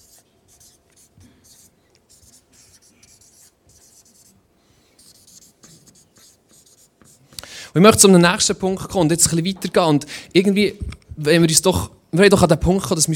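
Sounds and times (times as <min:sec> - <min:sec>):
marker squeaking on a flipchart: 0:00.0 - 0:04.3, 0:05.0 - 0:07.2
speech: 0:07.7 - 0:13.1.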